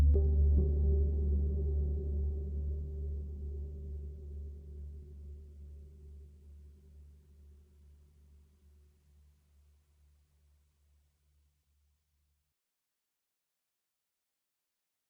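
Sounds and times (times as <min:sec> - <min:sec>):
ambient music: 0:00.0 - 0:07.1.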